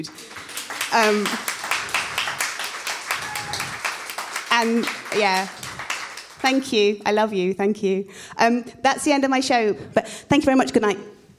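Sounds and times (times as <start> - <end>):
speech: 0.0 - 0.3, 0.9 - 1.5, 4.6 - 5.6, 6.4 - 11.1
audience applause: 0.0 - 6.8.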